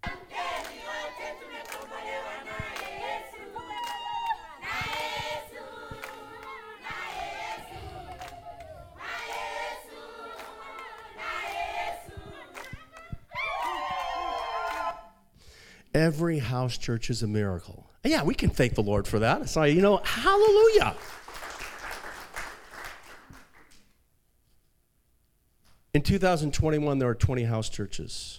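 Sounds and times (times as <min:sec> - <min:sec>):
congregation at a house church singing praise to God: 0:00.0 - 0:15.2
speech: 0:16.0 - 0:21.2, 0:26.0 - 0:28.3.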